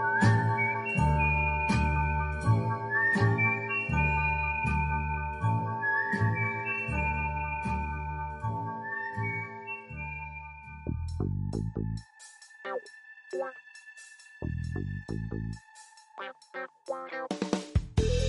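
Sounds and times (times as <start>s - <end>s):
whistled old signal melody in a song: 0.0s - 17.3s
rhythmic instrumental accompaniment of a song: 11.1s - 18.2s.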